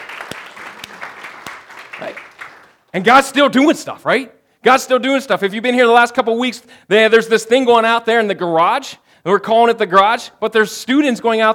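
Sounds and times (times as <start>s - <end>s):
audience round of applause: 0.0s - 2.9s
speech: 2.0s - 2.3s, 2.9s - 11.5s.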